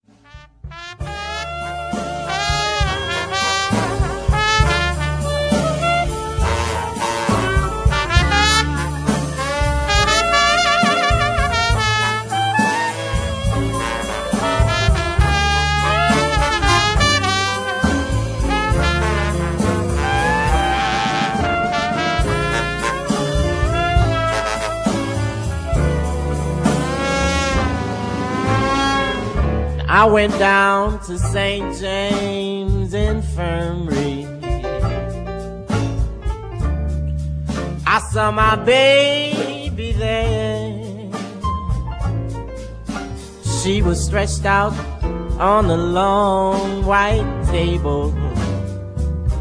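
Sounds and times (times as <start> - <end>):
brass instruments: 0.0 - 49.3.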